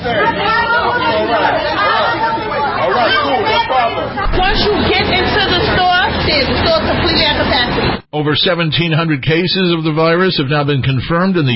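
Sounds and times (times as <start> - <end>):
crowd of shoppers chatting in a grocery store: 0.0 - 8.0
speech: 6.3 - 11.5.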